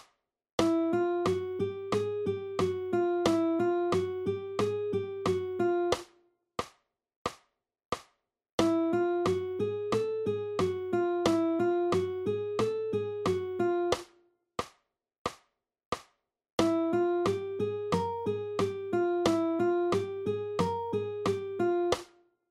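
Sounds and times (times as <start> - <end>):
guitar warm-up study: 0.6 - 6.1, 8.6 - 14.1, 16.6 - 22.1.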